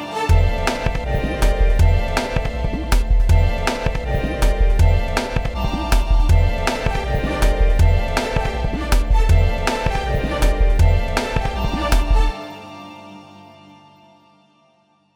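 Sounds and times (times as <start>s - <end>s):
EDM track: 0.3s - 12.4s.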